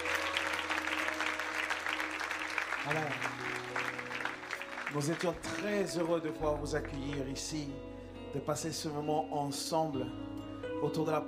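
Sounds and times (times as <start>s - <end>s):
audience applause: 0.0s - 6.4s
speech: 2.8s - 4.0s, 4.9s - 11.2s.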